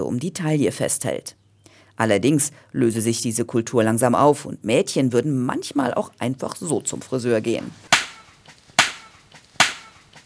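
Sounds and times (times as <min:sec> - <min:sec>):
speech: 0:00.0 - 0:01.4, 0:02.0 - 0:07.9
sabre chopping a coconut: 0:07.9 - 0:10.2.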